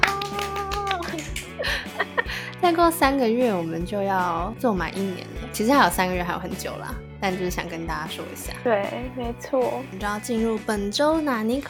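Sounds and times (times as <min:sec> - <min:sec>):
hand clapping: 0:00.0 - 0:01.8
laughter: 0:01.0 - 0:02.5
speech: 0:02.6 - 0:11.6.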